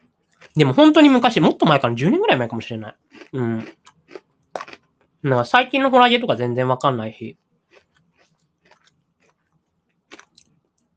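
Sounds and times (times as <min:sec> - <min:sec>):
crunchy biting and chewing of a Stella's cookie: 0:00.2 - 0:01.2, 0:02.9 - 0:05.2, 0:07.6 - 0:10.9
speech: 0:00.6 - 0:03.8, 0:05.2 - 0:07.4.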